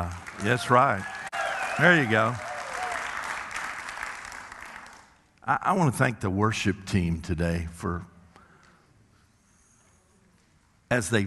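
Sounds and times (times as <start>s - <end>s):
speech: 0.0s - 1.1s, 1.8s - 2.5s, 5.5s - 8.1s, 10.9s - 11.2s
audience applause: 0.0s - 5.2s.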